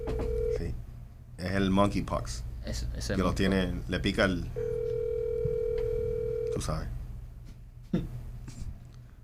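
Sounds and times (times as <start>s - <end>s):
telephone ringing on an outgoing call: 0.0s - 0.6s, 4.6s - 6.6s
low hum: 0.0s - 9.2s
speech: 1.4s - 5.0s, 6.6s - 7.0s, 7.9s - 8.2s.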